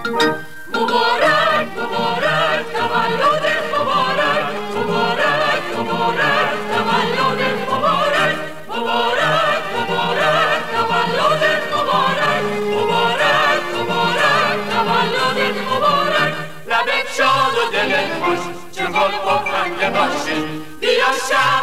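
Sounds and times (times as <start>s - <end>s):
choir singing: 0.1s - 21.6s.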